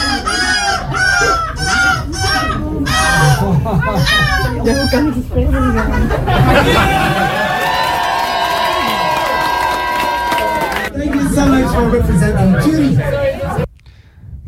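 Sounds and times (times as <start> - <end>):
male seagulls squabbling: 0.0 - 6.0
laughter: 0.0 - 13.7
speech: 4.6 - 7.4, 11.4 - 13.7.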